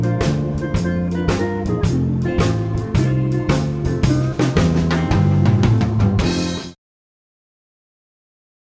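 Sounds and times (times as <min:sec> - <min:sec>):
blues playalong backing track in F: 0:00.0 - 0:06.8.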